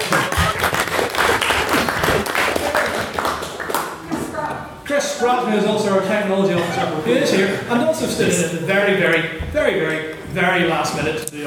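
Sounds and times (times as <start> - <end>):
audience applause: 0.0 - 4.1
murmuring voices: 0.0 - 11.4
speech: 5.2 - 11.4.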